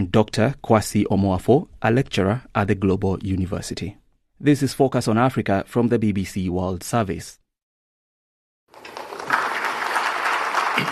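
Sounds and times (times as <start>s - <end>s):
speech: 0.0s - 7.4s
applause after climate finance deal announcement at COP29 summit in Azerbaijan: 8.7s - 10.8s.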